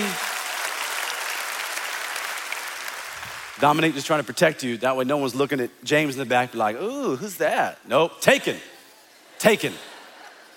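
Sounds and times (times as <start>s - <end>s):
crowd clapping for an engaged couple at a service: 0.0s - 4.6s
speech: 3.6s - 8.7s, 9.4s - 9.9s.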